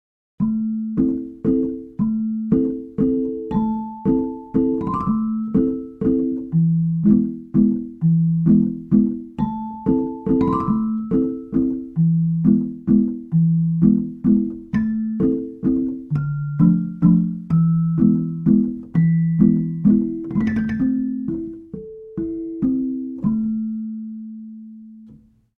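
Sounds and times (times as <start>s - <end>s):
Dulcitone celesta: 0.4s - 25.0s.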